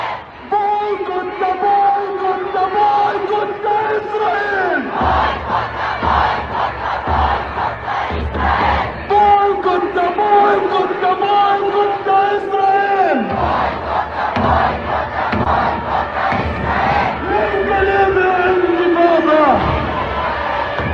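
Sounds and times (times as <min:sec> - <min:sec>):
large protest crowd chanting in unison: 0:00.0 - 0:20.9.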